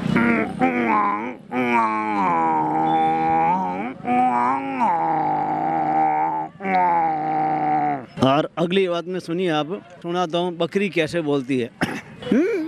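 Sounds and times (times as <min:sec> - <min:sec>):
camel roaring: 0:00.1 - 0:08.1
speech: 0:00.7 - 0:02.4, 0:08.6 - 0:12.5.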